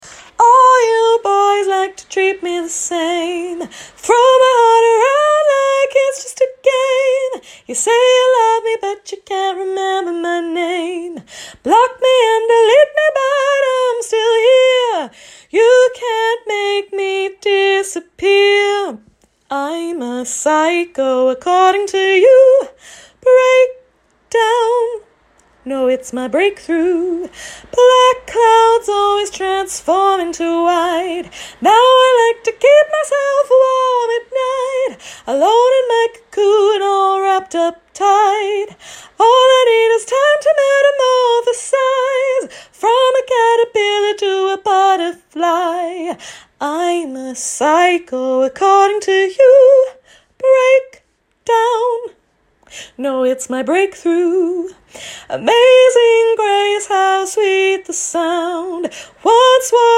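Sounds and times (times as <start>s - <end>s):
R&B a cappella vocals: 0.0s - 59.9s.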